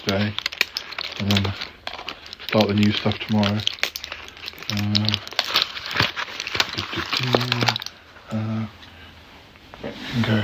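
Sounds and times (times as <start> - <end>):
pills rattling in crinkly packaging: 0.0 - 8.0
speech: 0.1 - 0.5, 1.2 - 1.7, 2.5 - 3.8, 4.7 - 5.3, 6.8 - 8.8, 9.8 - 10.4.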